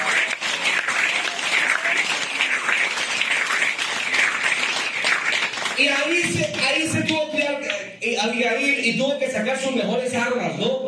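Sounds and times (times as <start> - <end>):
audience applause: 0.0 - 6.6
speech: 5.8 - 10.8.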